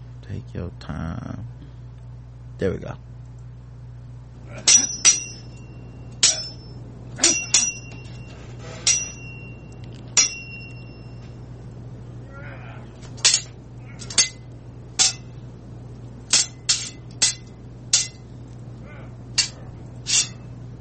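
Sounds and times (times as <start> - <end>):
low steady hum: 0.0 - 20.7
speech: 0.3 - 1.6, 2.6 - 3.1, 4.5 - 5.0
sword sound effect metallic clangs: 4.6 - 5.6, 6.2 - 8.1, 8.8 - 9.6, 10.2 - 11.2, 13.2 - 14.4, 15.0 - 15.3, 16.3 - 18.2, 19.4 - 20.5.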